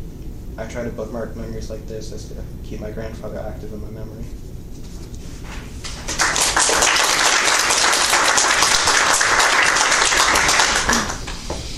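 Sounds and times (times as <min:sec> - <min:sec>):
speech: 0:00.6 - 0:04.6
round of applause: 0:05.8 - 0:11.5.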